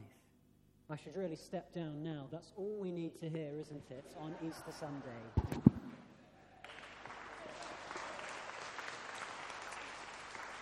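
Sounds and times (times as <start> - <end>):
speech: 0.9 - 5.7
audience applause: 6.6 - 10.5.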